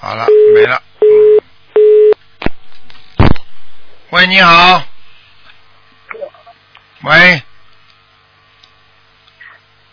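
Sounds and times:
speech: 0.1s - 0.8s, 4.2s - 4.9s, 7.0s - 7.5s
telephone call tone beeps while dialing: 0.3s - 2.2s.

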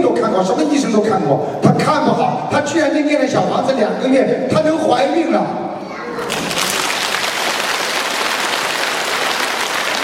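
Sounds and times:
speech: 0.4s - 5.7s
audience applause: 6.2s - 10.0s.

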